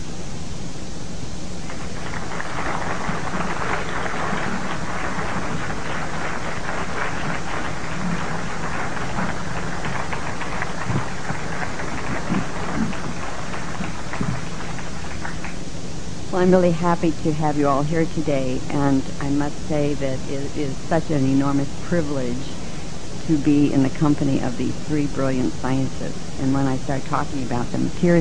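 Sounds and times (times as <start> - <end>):
audience applause: 1.6 - 15.6
speech: 16.4 - 22.6, 23.3 - 28.1.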